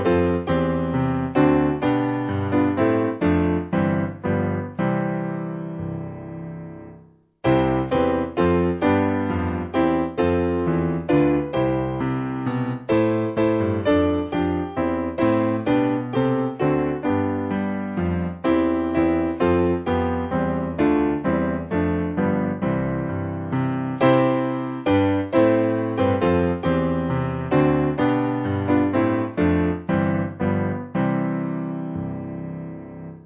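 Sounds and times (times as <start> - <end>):
piano: 0.0 - 33.2.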